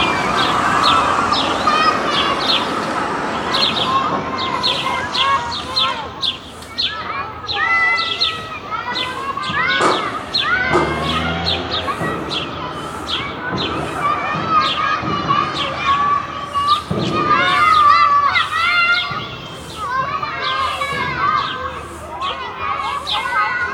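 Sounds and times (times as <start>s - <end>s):
playground ambience in Germany: 0.0s - 23.7s.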